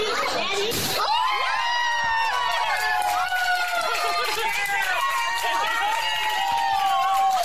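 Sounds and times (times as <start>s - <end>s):
restaurant crowd cheering: 0.1s - 7.4s
restaurant crowd clapping: 2.2s - 7.4s.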